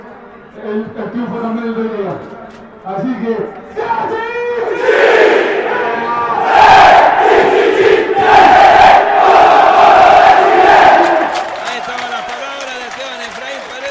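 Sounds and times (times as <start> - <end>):
speech: 0.6 - 5.1
stadium crowd cheering: 3.9 - 13.8
stadium crowd chanting: 4.7 - 12.4
stadium crowd applauding: 10.8 - 13.8.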